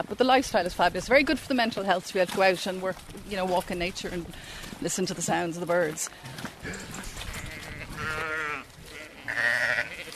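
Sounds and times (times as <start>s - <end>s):
speech: 0.0s - 7.2s
dairy sheep bleating: 6.6s - 10.1s.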